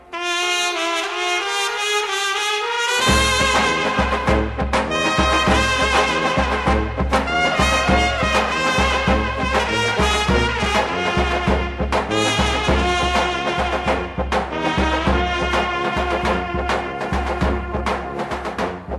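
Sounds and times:
trumpet: 0.0 - 18.9.

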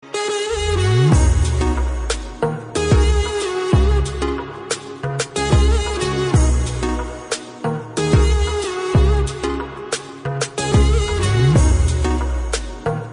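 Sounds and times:
chill music: 0.0 - 13.1.

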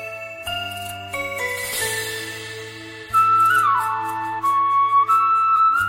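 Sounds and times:
soundtrack music: 0.7 - 5.7.

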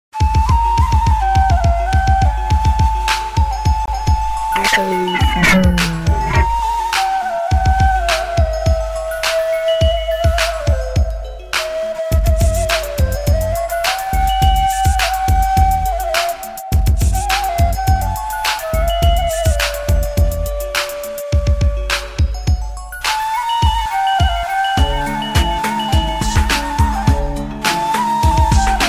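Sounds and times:
flute remix: 0.1 - 28.8.

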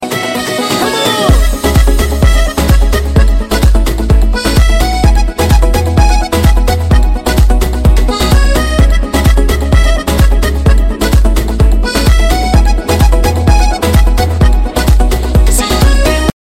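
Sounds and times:
dance music: 0.0 - 16.4.

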